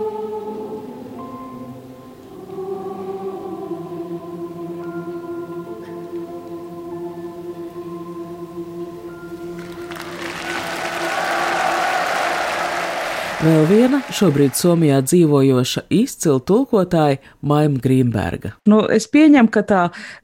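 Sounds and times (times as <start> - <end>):
sustained musical chord: 0.0 - 14.5
large concert audience applause: 9.6 - 15.2
speech: 13.4 - 20.2.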